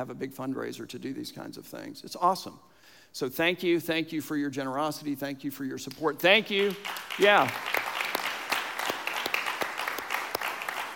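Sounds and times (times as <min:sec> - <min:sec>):
speech: 0:00.0 - 0:07.8
audience applauding: 0:06.6 - 0:10.9.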